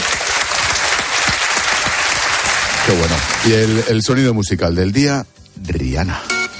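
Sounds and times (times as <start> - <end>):
audience applause: 0.0 - 4.0
speech: 2.9 - 6.3.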